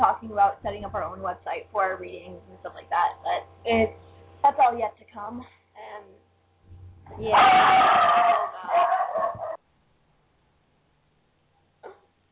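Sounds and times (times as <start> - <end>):
speech: 0.2 - 6.2, 7.1 - 9.3
dogs barking: 7.2 - 9.6.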